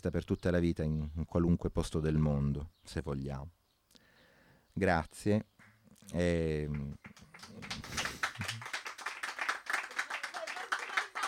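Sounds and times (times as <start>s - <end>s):
speech: 0.0s - 3.6s, 4.8s - 8.0s
applause: 6.6s - 11.2s.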